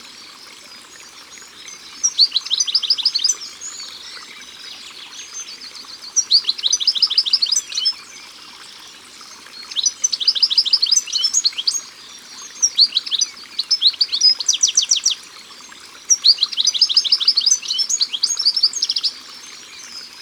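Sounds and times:
European goldfinch singing: 1.7s - 3.8s, 6.1s - 8.0s, 9.6s - 15.2s, 16.1s - 20.2s.

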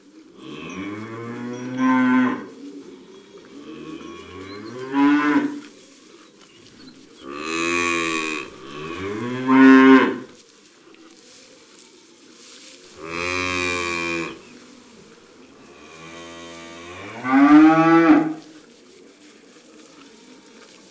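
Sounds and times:
cows mooing: 0.4s - 2.6s, 3.4s - 5.6s, 7.3s - 10.3s, 12.9s - 14.5s, 15.6s - 18.4s.

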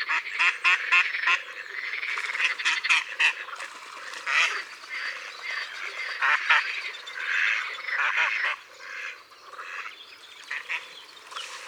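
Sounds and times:
mallard quacking: 0.1s - 11.0s.

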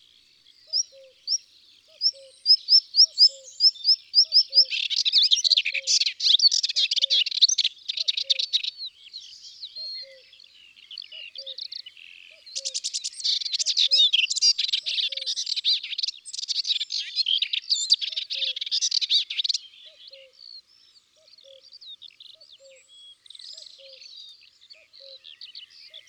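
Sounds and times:
Melodious warbler song: 0.0s - 26.0s.

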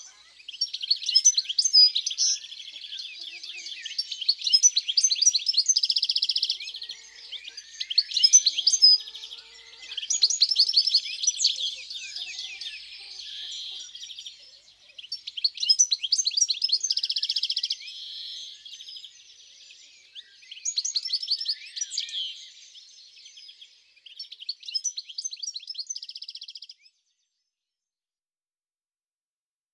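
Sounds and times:
European greenfinch singing in the countryside: 0.0s - 22.4s.

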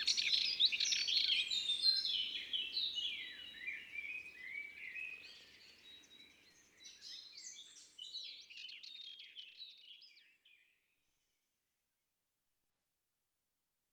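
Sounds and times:
Sardinian warbler singing: 0.0s - 10.0s.

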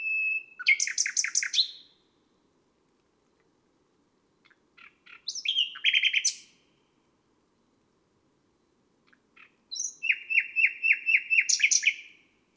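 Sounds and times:
nightingale singing on a May night: 0.0s - 2.1s, 4.4s - 6.6s, 9.1s - 12.2s.

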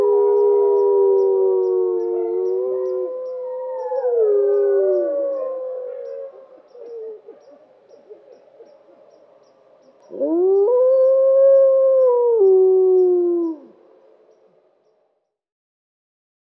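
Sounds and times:
wolf howling: 0.0s - 7.4s, 10.1s - 13.8s.

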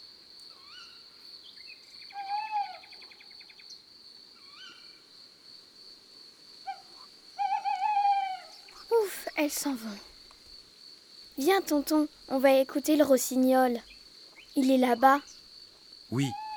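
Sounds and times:
tawny owl hooting: 2.2s - 3.0s, 6.7s - 8.7s, 16.1s - 16.5s
speech: 9.4s - 10.1s, 11.4s - 13.9s, 14.6s - 15.3s, 16.1s - 16.4s.

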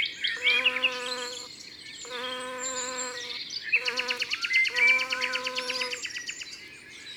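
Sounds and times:
small birds chirping and warbling: 0.1s - 6.7s
bumblebee buzzing: 0.4s - 6.1s.

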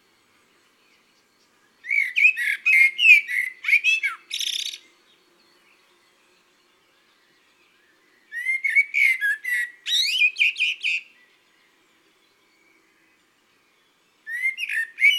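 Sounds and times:
common blackbird singing: 0.6s - 6.3s, 7.2s - 11.6s, 14.2s - 15.1s.

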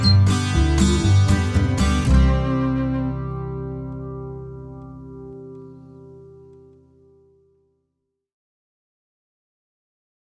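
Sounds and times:
instrumental music: 0.0s - 7.5s.

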